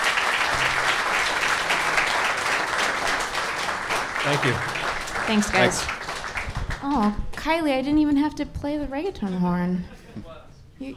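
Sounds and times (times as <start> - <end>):
round of applause: 0.0 - 7.2
speech: 4.2 - 6.0, 6.8 - 10.9.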